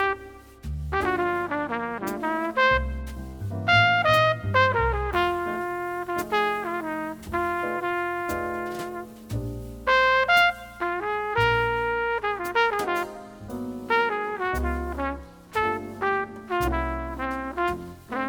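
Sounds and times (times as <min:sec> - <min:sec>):
jazz ballad with alto saxophone: 0:00.0 - 0:18.2.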